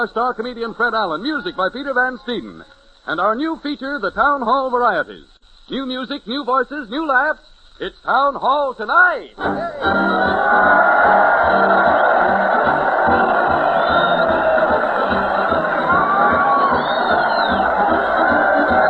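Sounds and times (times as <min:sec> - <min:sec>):
speech: 0:00.0 - 0:12.1
crowd cheering at a parade: 0:09.5 - 0:18.8.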